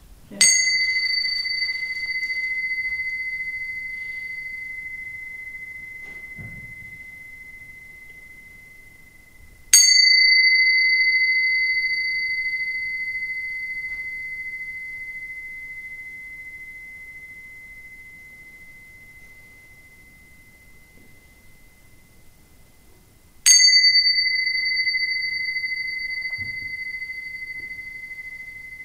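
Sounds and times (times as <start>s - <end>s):
small bell ringing: 0.3s - 22.4s, 23.4s - 28.8s.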